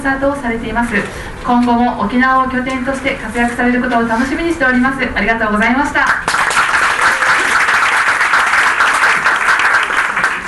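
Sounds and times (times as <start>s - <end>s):
speech: 0.0s - 6.4s
audience applause: 6.2s - 10.4s.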